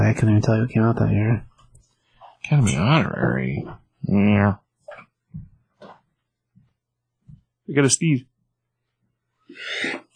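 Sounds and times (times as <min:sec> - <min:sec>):
speech: 0:00.1 - 0:01.5, 0:02.4 - 0:04.6, 0:07.7 - 0:08.3, 0:09.5 - 0:10.0
person sneezing: 0:09.5 - 0:10.1.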